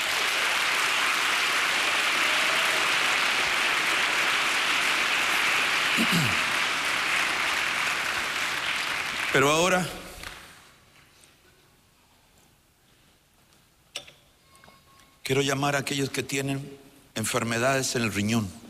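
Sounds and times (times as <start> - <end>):
audience applauding: 0.0 - 10.5
speech: 6.0 - 6.5, 9.4 - 10.0, 15.3 - 18.6.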